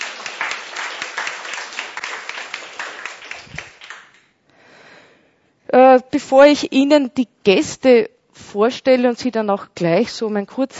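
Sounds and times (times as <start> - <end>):
audience applause: 0.0 - 4.2
speech: 6.0 - 10.7.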